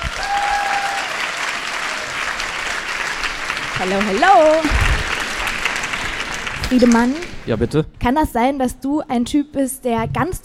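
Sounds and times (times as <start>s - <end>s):
audience applause: 0.0s - 7.6s
speech: 3.8s - 4.9s, 6.7s - 10.4s.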